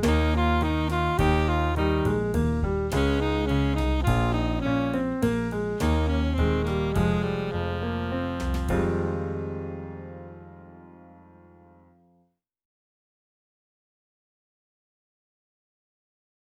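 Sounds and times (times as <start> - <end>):
saxophone: 0.0 - 10.2.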